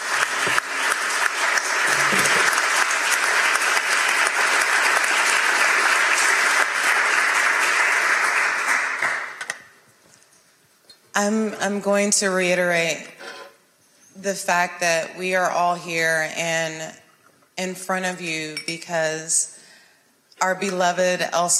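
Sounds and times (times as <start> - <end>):
crowd applause: 0.0 - 9.5
speech: 11.2 - 13.1, 14.2 - 17.0, 17.6 - 19.6, 20.4 - 21.5.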